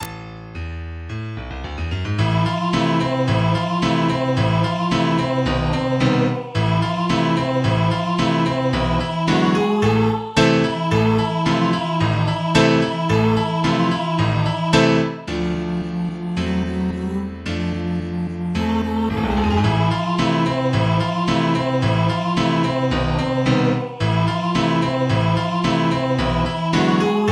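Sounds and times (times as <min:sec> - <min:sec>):
piano: 0:00.0 - 0:27.3.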